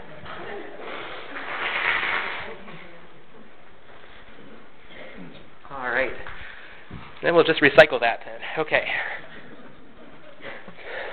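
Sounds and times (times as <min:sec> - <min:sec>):
person blowing nose: 0:00.8 - 0:02.5
speech: 0:07.2 - 0:09.2.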